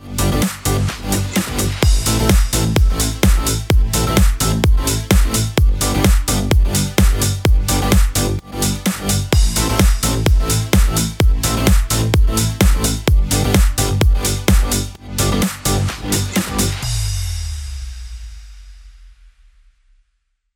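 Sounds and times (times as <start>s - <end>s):
electro pop background music at 128 BPM: 0.0s - 17.2s.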